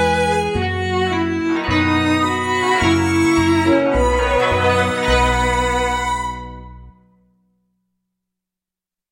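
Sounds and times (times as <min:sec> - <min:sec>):
four-string instrument: 0:00.0 - 0:07.2.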